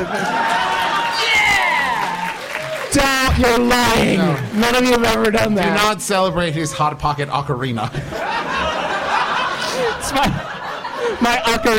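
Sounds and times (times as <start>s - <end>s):
laughter: 0.0s - 2.0s, 5.2s - 11.7s
audience applause: 0.0s - 5.7s
speech: 3.0s - 8.4s, 10.1s - 11.7s.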